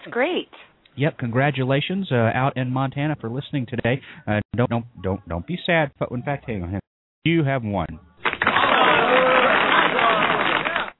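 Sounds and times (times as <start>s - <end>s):
speech: 0.0s - 8.1s
applause sound effect: 8.2s - 10.9s.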